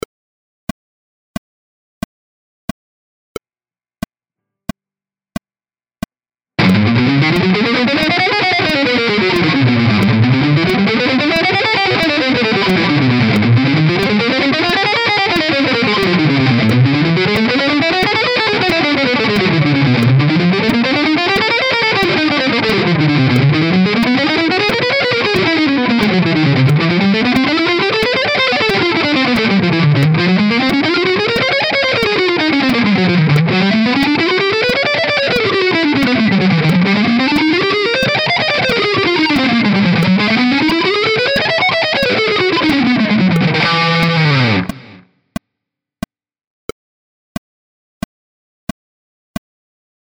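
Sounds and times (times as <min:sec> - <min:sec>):
scales with rhythmic variation: 0:06.6 - 0:45.0.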